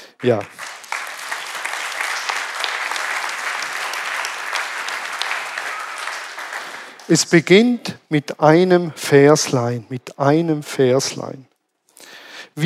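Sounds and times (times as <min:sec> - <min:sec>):
audience applause: 0:00.0 - 0:07.4
speech: 0:00.2 - 0:00.6, 0:07.1 - 0:11.5.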